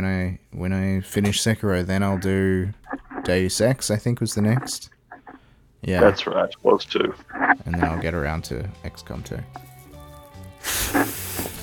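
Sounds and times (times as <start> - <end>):
speech: 1.0 - 5.0, 5.8 - 9.7
blowing air into a surgical glove: 9.8 - 11.6.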